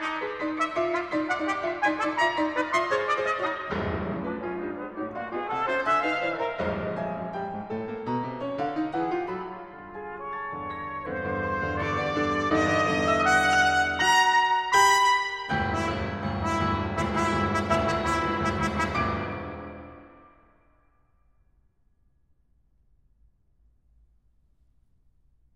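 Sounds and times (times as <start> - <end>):
trumpet playing a sonata: 0.0 - 7.4, 9.6 - 20.4
piano playing a sonata: 0.0 - 21.5.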